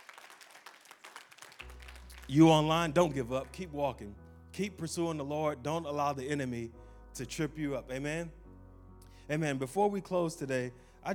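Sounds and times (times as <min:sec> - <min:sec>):
audience hand clapping: 0:00.0 - 0:03.7
speech: 0:02.3 - 0:08.4, 0:09.3 - 0:11.1.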